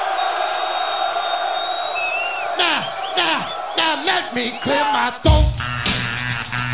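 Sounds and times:
high whistles: 0:00.0 - 0:05.0
whooping shout: 0:00.0 - 0:05.0
crowd cheering: 0:00.0 - 0:06.6
speech: 0:04.0 - 0:06.2.

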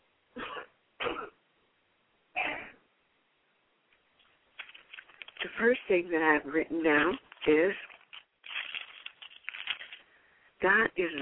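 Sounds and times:
person coughing: 0:00.4 - 0:01.4, 0:02.4 - 0:02.8
speech: 0:05.4 - 0:07.9, 0:10.6 - 0:11.2.

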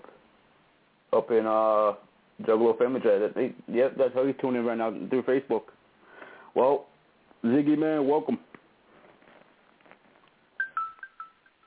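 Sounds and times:
speech: 0:01.2 - 0:05.8, 0:06.6 - 0:08.5
mobile phone ringtone going off: 0:10.6 - 0:11.6.

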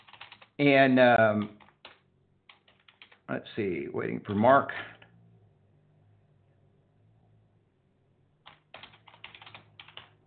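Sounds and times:
fingers typing on a computer keyboard: 0:00.0 - 0:00.6, 0:01.4 - 0:03.3, 0:08.4 - 0:10.2
speech: 0:00.6 - 0:01.6, 0:03.3 - 0:04.9.

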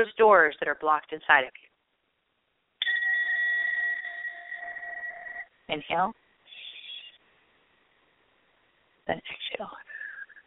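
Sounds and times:
speech: 0:00.0 - 0:01.7, 0:05.7 - 0:06.2, 0:09.1 - 0:09.9
breath bowl struck and ringing with metallic tone: 0:02.8 - 0:05.6.

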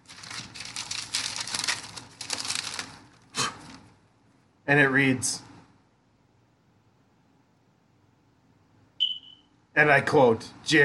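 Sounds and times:
paper envelope rustling as it is opened: 0:00.0 - 0:03.9
speech: 0:04.7 - 0:05.5, 0:09.8 - 0:10.8.

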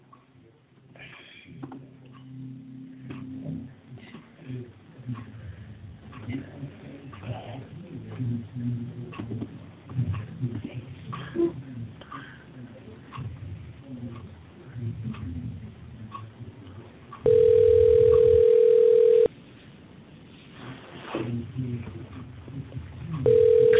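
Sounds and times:
people talking: 0:03.4 - 0:05.4, 0:06.1 - 0:17.5, 0:21.0 - 0:23.7
telephone dial tone while a caller is connected to the show: 0:17.3 - 0:19.3, 0:23.3 - 0:23.7.

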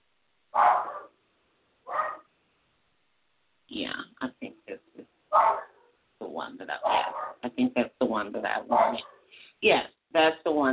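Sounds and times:
dog barking: 0:00.6 - 0:01.2, 0:01.9 - 0:02.3, 0:05.3 - 0:06.0, 0:06.8 - 0:07.4, 0:08.7 - 0:09.3
speech: 0:06.5 - 0:10.7.

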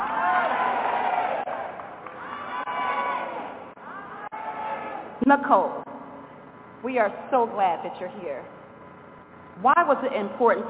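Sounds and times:
audience screaming and cheering: 0:00.0 - 0:05.1
speech: 0:05.3 - 0:05.8, 0:06.8 - 0:08.6, 0:09.6 - 0:10.6.

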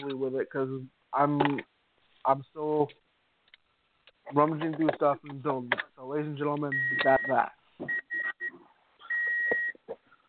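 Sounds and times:
speech: 0:00.0 - 0:03.0, 0:04.3 - 0:08.0
high-pitched electronic beeps like a microwave's: 0:06.7 - 0:10.2.

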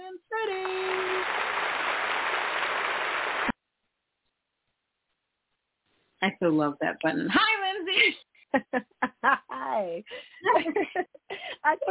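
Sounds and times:
round of applause: 0:00.5 - 0:03.6
speech: 0:06.2 - 0:11.8
laughter: 0:07.9 - 0:09.5, 0:10.3 - 0:11.6.

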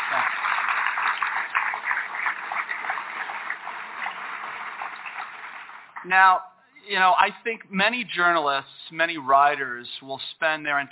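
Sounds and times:
audience applause: 0:00.0 - 0:06.0
speech: 0:06.0 - 0:10.8.

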